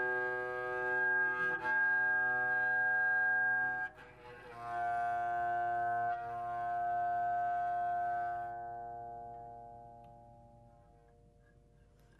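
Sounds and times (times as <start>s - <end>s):
classical bowed strings: 0.0s - 12.1s
harp: 0.0s - 12.1s.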